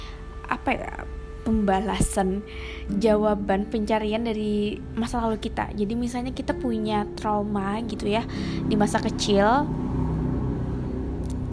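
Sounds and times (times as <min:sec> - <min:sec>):
speech: 0:00.7 - 0:09.8
loud motorcycle passing outside: 0:06.5 - 0:11.5.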